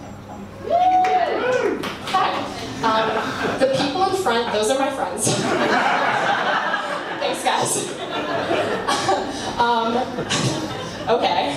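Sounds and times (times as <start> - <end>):
audience clapping and cheering: 0.7 - 2.4
laughter: 2.5 - 11.5
speech: 4.2 - 6.0, 9.6 - 11.5.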